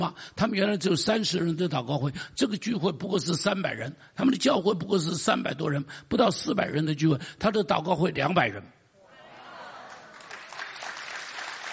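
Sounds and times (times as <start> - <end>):
speech: 0.0 - 8.8
audience applause: 9.8 - 11.7.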